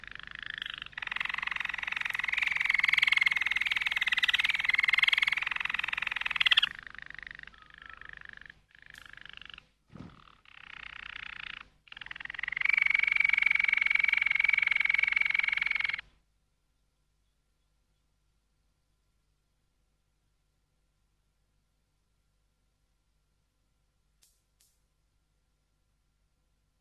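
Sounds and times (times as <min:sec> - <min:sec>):
Waterslager canary song: 0:00.0 - 0:16.0.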